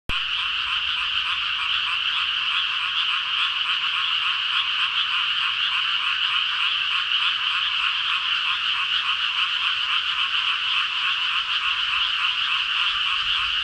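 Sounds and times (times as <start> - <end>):
frogs calling in a dense chorus of pulsed croaks: 0.1 - 13.6.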